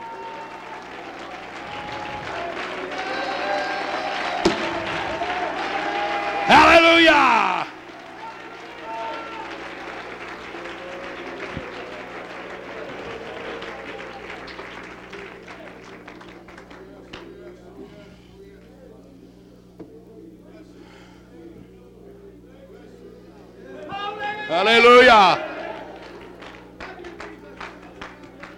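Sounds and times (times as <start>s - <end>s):
audience clapping: 0.0s - 17.8s, 24.5s - 28.5s.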